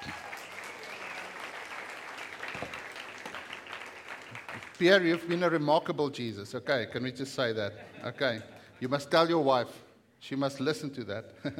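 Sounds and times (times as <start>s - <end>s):
audience applause at a morning church service: 0.0s - 5.4s
speech: 4.8s - 11.5s.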